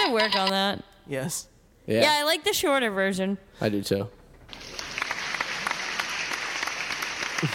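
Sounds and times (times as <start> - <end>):
speech: 0.1 - 4.2
applause sound effect: 4.5 - 7.5.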